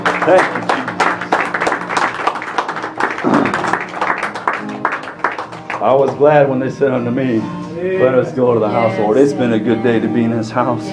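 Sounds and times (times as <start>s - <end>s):
audience hand clapping in praise: 0.0s - 6.6s
speech: 0.2s - 0.6s, 5.8s - 10.9s.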